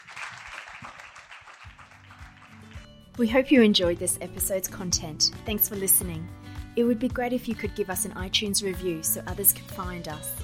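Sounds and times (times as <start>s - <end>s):
audience applause: 0.0s - 2.8s
speech: 3.2s - 10.4s.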